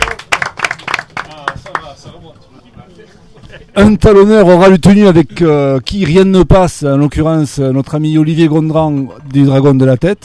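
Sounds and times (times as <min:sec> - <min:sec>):
audience applauding: 0:00.0 - 0:02.0
speech: 0:02.0 - 0:10.2.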